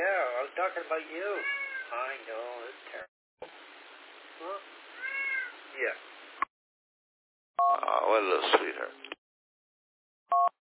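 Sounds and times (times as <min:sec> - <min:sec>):
speech: 0:00.7 - 0:03.6, 0:04.4 - 0:04.8, 0:05.8 - 0:06.1, 0:07.6 - 0:09.2
cat meowing: 0:01.4 - 0:02.0, 0:05.0 - 0:05.6.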